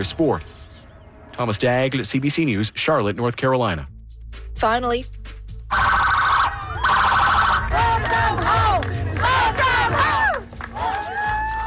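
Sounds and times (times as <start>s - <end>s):
speech: 0.0s - 0.7s, 1.4s - 4.0s, 4.6s - 6.0s
horns blaring: 5.7s - 10.6s
emergency sirens wailing: 5.7s - 11.6s
loud crowd cheering and whooping at a homecoming celebration: 5.8s - 11.6s.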